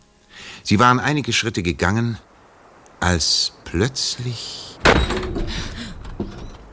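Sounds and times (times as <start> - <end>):
speech: 0.6 - 2.3, 3.0 - 5.1
garden gate slamming shut: 4.8 - 6.7.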